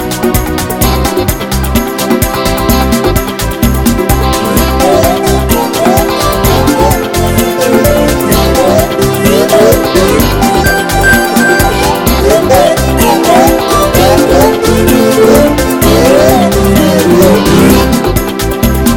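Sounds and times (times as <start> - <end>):
dance song: 0.0 - 18.9.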